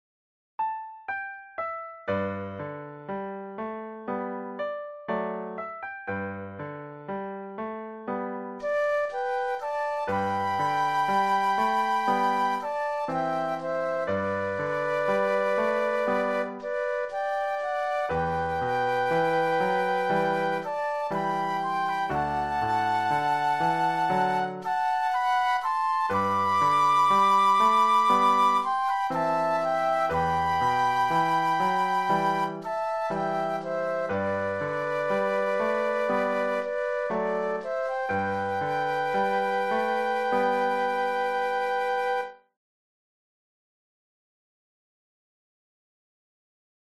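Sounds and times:
piano: 0.6 - 42.6
flute duet: 8.6 - 42.6.

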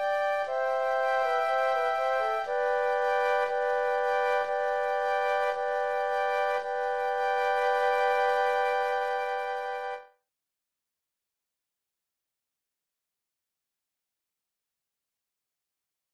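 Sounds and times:
classical chorale played by flute trio: 0.0 - 10.1.

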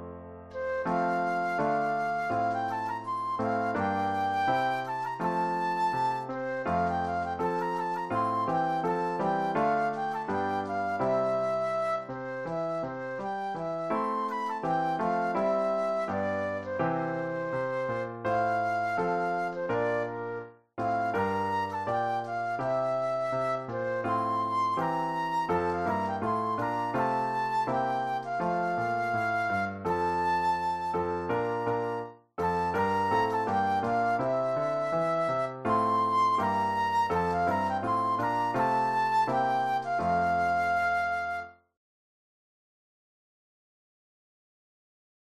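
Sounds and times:
flute solo: 0.5 - 41.7.

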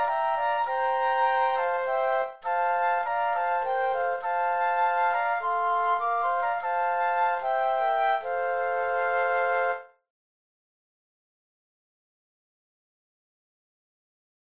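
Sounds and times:
flute trio playing: 0.0 - 10.0.

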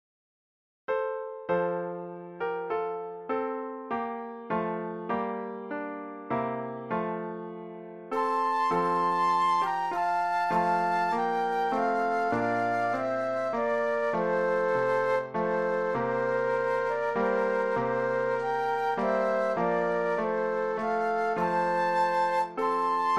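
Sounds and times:
piano: 0.9 - 23.1
flute duet: 8.1 - 23.1.

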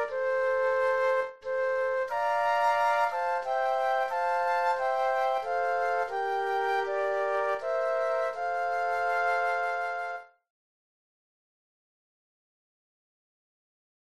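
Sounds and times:
flute trio playing: 0.0 - 10.4.

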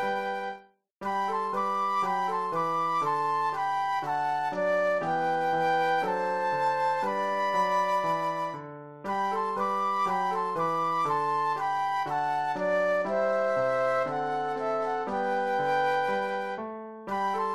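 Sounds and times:
classical flute duet: 0.0 - 17.5
classical piano: 0.0 - 17.5.

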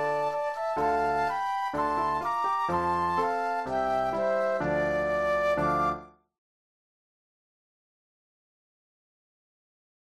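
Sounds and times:
flute duet: 0.0 - 6.2
piano: 0.0 - 6.3.

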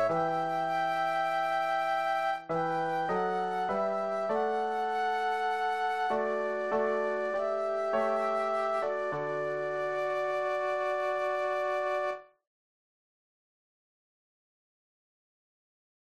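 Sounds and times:
flute duet: 0.0 - 12.3
piano: 0.0 - 12.4.

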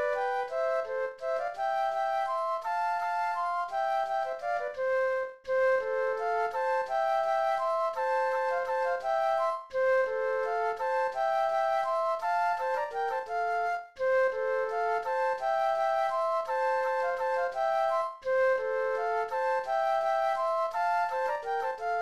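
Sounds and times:
classical flute duet playing a waltz: 0.0 - 21.9.

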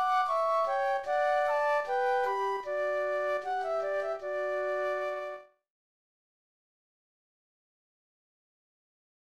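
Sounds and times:
classical flute duet: 0.0 - 5.6.

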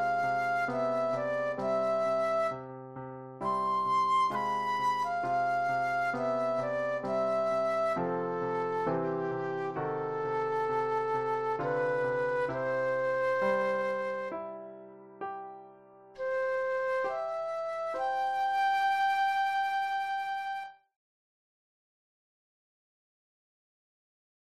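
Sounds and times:
flute solo: 0.0 - 2.7, 3.4 - 14.7, 16.2 - 20.9.

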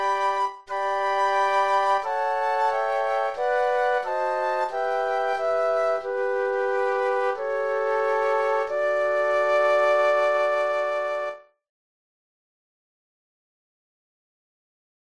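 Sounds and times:
flute quartet playing: 0.0 - 11.4.

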